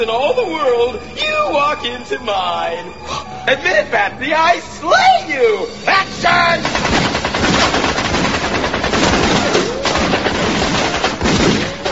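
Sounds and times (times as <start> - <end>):
speech: 0.0 - 6.8
guns firing blank rounds during a staged film-set scene: 6.6 - 11.9.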